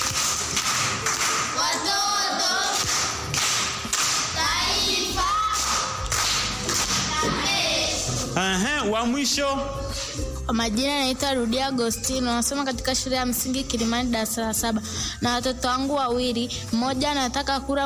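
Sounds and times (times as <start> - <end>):
people clapping for a primary school pupil: 0.0 - 8.0
speech: 8.5 - 9.8, 10.5 - 17.8.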